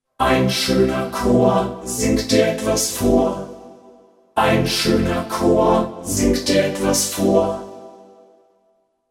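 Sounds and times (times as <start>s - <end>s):
VP550 synthesized male and female voices: 0.2s - 3.6s, 4.4s - 7.7s.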